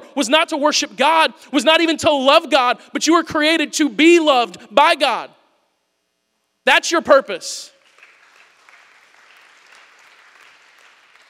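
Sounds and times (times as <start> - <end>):
speech: 0.2 - 5.4, 6.6 - 7.8
light polite golf claps: 7.8 - 11.2.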